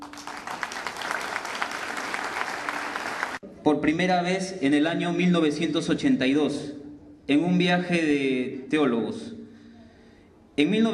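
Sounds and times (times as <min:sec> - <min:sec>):
audience applause: 0:00.0 - 0:03.4
speech: 0:03.8 - 0:09.4, 0:10.6 - 0:10.9.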